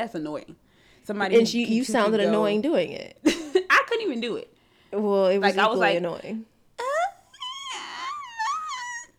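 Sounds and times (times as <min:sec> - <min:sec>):
speech: 0:00.0 - 0:06.5
voice imitating a crying baby: 0:06.8 - 0:09.1.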